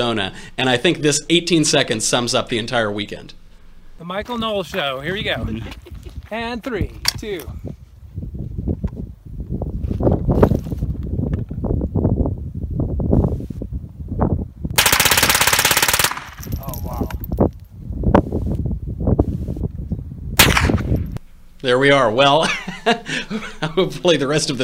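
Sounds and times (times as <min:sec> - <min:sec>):
speech: 0:00.0 - 0:03.4, 0:04.0 - 0:07.7, 0:21.6 - 0:24.6
wind buffeting the microphone: 0:04.2 - 0:21.2
laughter: 0:05.4 - 0:06.3, 0:22.3 - 0:24.0
fast automatic fire: 0:14.8 - 0:16.5, 0:20.4 - 0:21.0
guns fired at a shooting range in Arizona: 0:14.8 - 0:16.5, 0:20.4 - 0:21.1.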